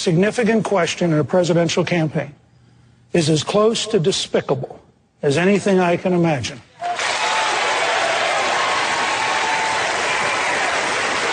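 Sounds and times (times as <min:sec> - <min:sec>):
speech: 0:00.0 - 0:02.4, 0:03.1 - 0:07.0
audience applause in a played clip: 0:06.8 - 0:11.3.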